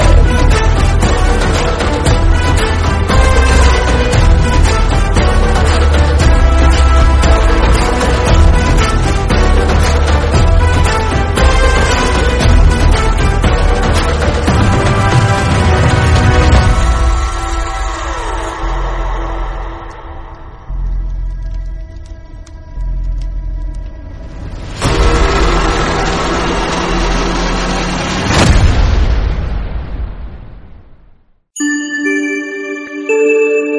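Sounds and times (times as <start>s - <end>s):
car entry background music: 0.0s - 29.1s, 31.6s - 33.7s.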